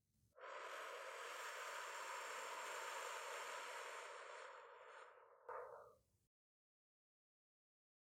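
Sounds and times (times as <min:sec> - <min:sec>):
long slow exhale during a 4-7-8 breathing exercise: 0:00.3 - 0:05.9.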